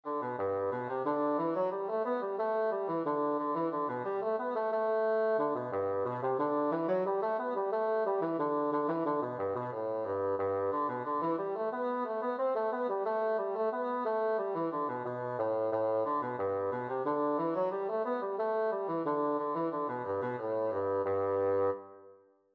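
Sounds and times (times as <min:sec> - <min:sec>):
bassoon playing an air: 0:00.0 - 0:22.1.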